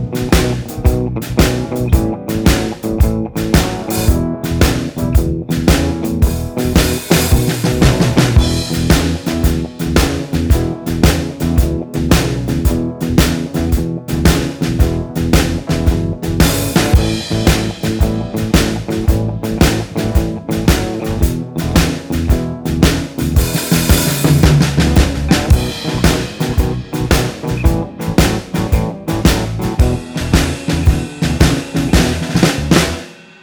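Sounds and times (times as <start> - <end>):
slide guitar backing: 0.0 - 33.0.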